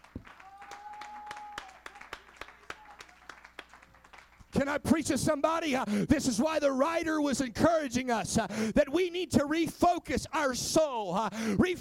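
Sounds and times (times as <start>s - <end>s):
audience clapping hands: 0.0s - 4.9s
speech: 4.6s - 11.7s.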